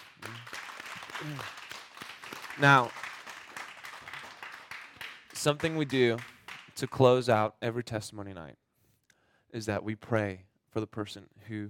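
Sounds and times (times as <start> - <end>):
audience applause: 0.0 - 6.7
speech: 1.2 - 1.6, 2.6 - 3.0, 5.4 - 8.6, 9.5 - 11.6.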